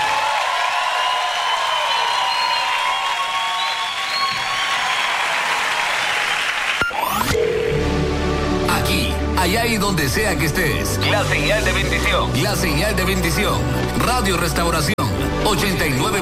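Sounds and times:
crowd applauding: 0.0 - 7.3
sweeping electronic tone: 6.8 - 8.7
speech: 9.9 - 16.2.

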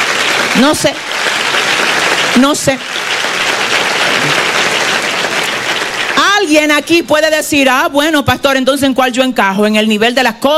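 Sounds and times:
crowd applauding: 0.0 - 6.9
speech: 0.6 - 1.1, 1.8 - 3.0, 4.2 - 4.4, 6.4 - 10.5.

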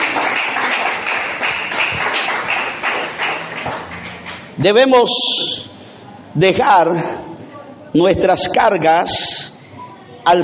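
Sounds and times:
audience applause: 0.0 - 4.6
speech: 4.6 - 5.7, 6.4 - 7.2, 7.9 - 9.3, 10.2 - 10.4.

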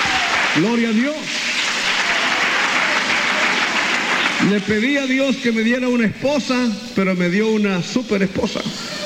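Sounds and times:
congregation applauding during a church service: 0.0 - 5.8
speech: 0.6 - 1.5, 4.4 - 8.9.

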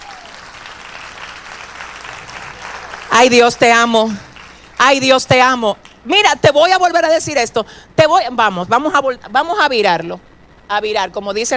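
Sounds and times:
audience applause: 0.0 - 4.8
speech: 3.2 - 4.2, 4.8 - 11.5.

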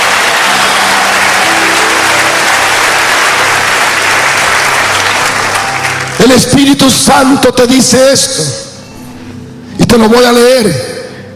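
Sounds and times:
loud audience applause: 0.0 - 6.5
speech: 6.2 - 8.7, 9.9 - 10.9.

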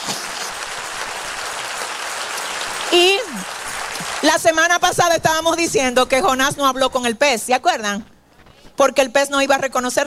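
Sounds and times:
congregation applauding in a Spanish-language church service: 0.0 - 5.0
speech: 4.2 - 8.1, 8.8 - 10.0.

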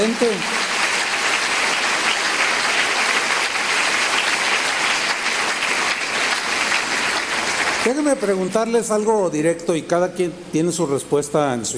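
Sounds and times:
speech: 0.0 - 0.6, 7.9 - 11.7
audience applause: 0.0 - 8.5.

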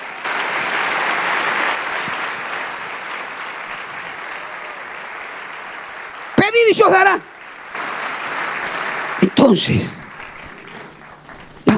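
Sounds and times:
loud applause from audience: 0.0 - 11.7
speech: 6.6 - 7.3, 9.4 - 10.0.

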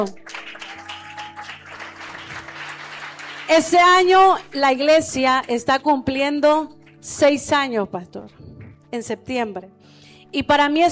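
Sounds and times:
speech: 0.0 - 0.2, 3.5 - 10.9
crowd applause: 0.1 - 4.6.

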